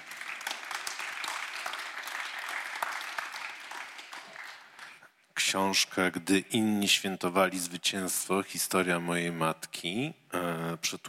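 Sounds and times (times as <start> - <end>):
audience applause: 0.0 - 5.0
speech: 5.5 - 11.0.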